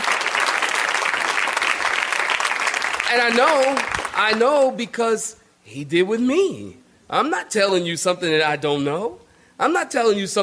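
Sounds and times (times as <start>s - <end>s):
audience clapping: 0.0s - 4.6s
speech: 3.1s - 10.4s.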